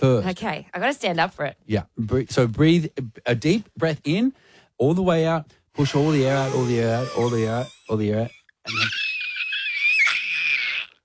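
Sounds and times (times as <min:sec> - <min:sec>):
speech: 0:00.0 - 0:09.1
person screaming as hard as possible: 0:06.0 - 0:07.8, 0:08.7 - 0:11.0.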